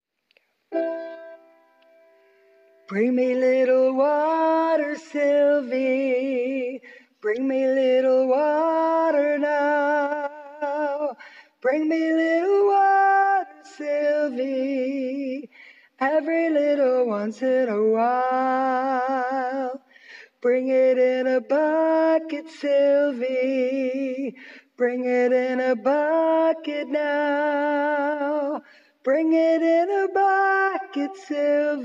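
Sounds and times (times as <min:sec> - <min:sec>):
high harmony: 0:00.7 - 0:31.8.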